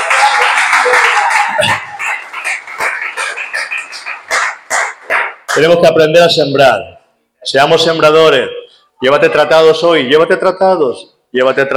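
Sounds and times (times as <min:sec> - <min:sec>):
church congregation applause during a service: 0:00.0 - 0:05.7
speech: 0:05.6 - 0:11.7.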